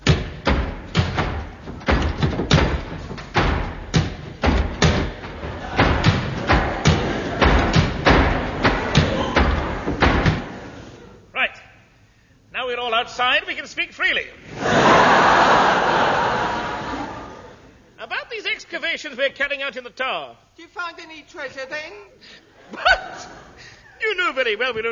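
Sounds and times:
sharp knock: 0.0s - 10.6s
heavy wooden doors thudding shut: 0.0s - 10.8s
laughter: 5.4s - 11.2s, 14.5s - 17.7s, 22.6s - 24.0s
speech: 13.0s - 14.9s, 18.7s - 23.4s, 24.0s - 24.9s.

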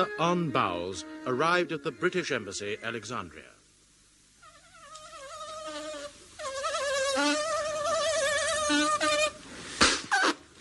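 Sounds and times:
speech: 0.0s - 3.5s
flies buzzing on a hot afternoon at the British Embassy in Alexandria: 4.4s - 9.4s.

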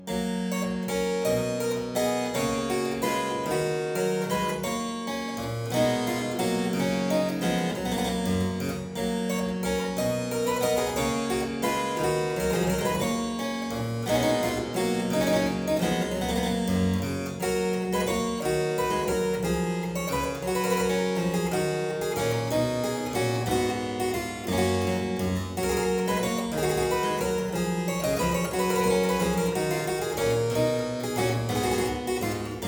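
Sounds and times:
harpsichord aria in G major: 0.0s - 32.6s.

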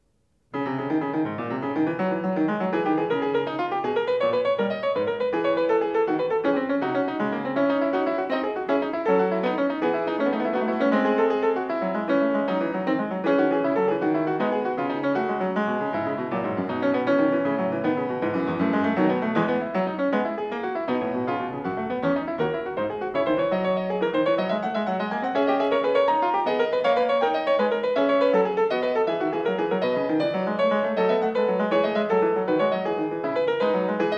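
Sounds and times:
baroque keyboard fugue: 0.5s - 34.1s.

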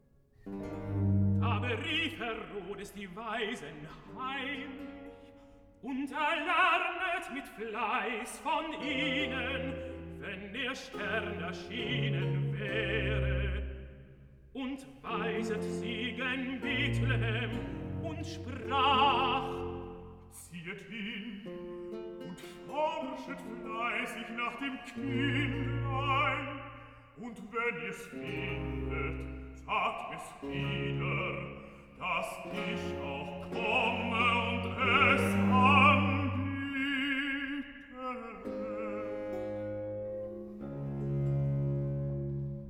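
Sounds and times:
tenor singing recitative: 0.4s - 42.6s
bass singing recitative: 0.7s - 4.9s, 8.5s - 21.2s, 22.8s - 26.7s, 27.3s - 39.7s.

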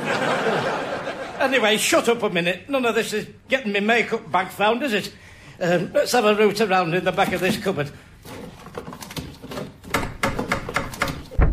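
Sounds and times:
laughter: 0.0s - 1.6s
speech: 1.4s - 8.9s
knocking on a door: 9.9s - 11.5s.

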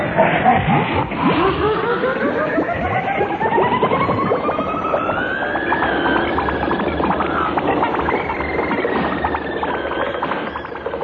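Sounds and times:
comic sound effect of a wall driven at speed like a vehicle: 0.0s - 10.2s.

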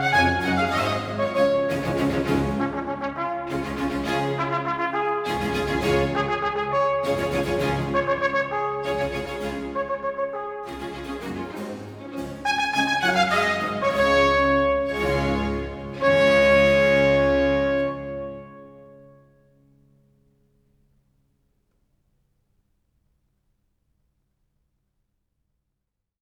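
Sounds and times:
trumpet sonata: 0.0s - 19.4s.

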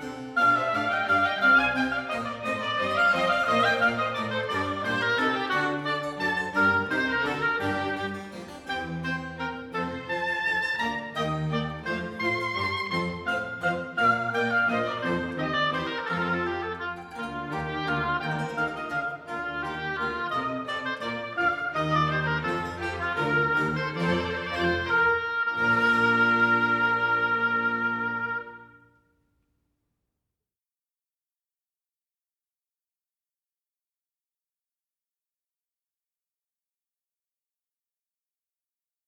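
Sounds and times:
oboe concerto in B flat major: 0.0s - 29.0s.

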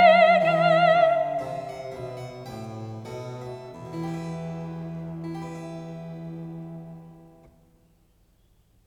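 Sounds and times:
wedding cantata recitative singing: 0.0s - 2.2s.

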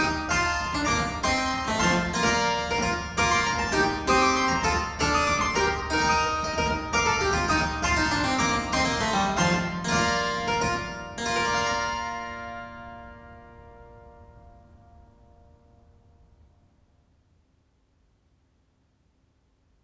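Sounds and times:
harpsichord corranto: 0.0s - 15.7s.

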